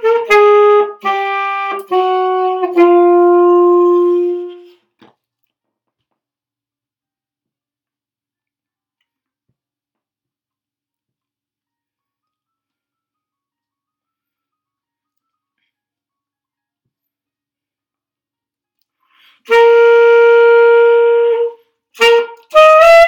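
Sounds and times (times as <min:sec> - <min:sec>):
blues alto saxophone: 0:00.0 - 0:04.9, 0:19.3 - 0:23.0.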